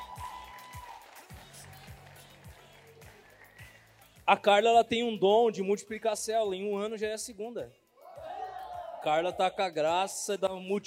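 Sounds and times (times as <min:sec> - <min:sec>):
audience applause: 0:00.0 - 0:04.0
speech: 0:04.3 - 0:07.8, 0:09.0 - 0:10.8.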